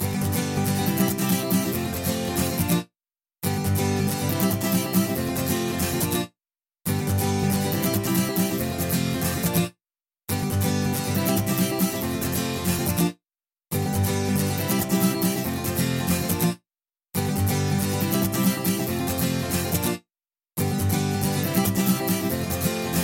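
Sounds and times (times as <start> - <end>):
guitar ringtone: 0.0 - 2.8, 3.4 - 6.3, 6.9 - 9.7, 10.3 - 13.1, 13.7 - 16.6, 17.2 - 20.0, 20.6 - 23.0.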